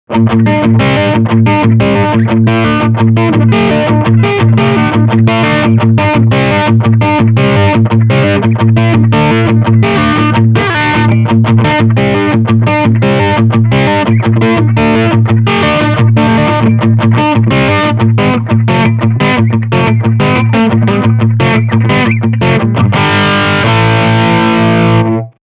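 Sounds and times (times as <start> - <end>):
crunchy guitar riff: 0.1 - 25.4.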